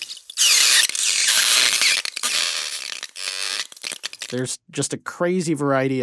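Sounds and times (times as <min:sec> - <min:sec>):
hot knife sizzling on water beads: 0:00.0 - 0:04.4
speech: 0:04.3 - 0:06.0.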